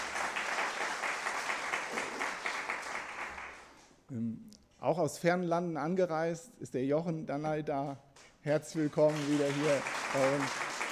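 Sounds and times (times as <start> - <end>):
audience applause: 0.0 - 3.8, 8.7 - 10.9
speech: 4.8 - 10.7.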